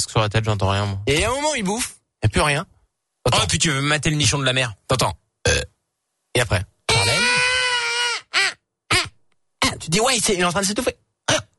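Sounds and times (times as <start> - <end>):
speech: 0.1 - 5.2, 6.4 - 6.7, 9.8 - 11.4
voice imitating a crying baby: 6.9 - 9.2.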